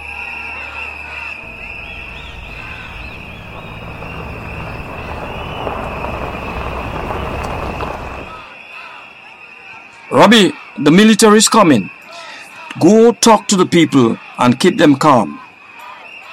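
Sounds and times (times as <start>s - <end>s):
distant rumble of trucks: 1.4s - 8.4s
faint chirps: 1.4s - 8.4s
thin high-pitched whine: 1.4s - 8.4s
speech: 10.2s - 12.0s, 12.8s - 15.4s.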